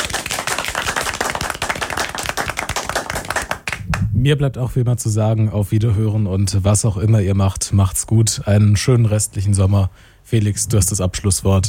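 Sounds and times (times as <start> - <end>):
live audience clapping: 0.0 - 4.1
speech: 4.2 - 11.6.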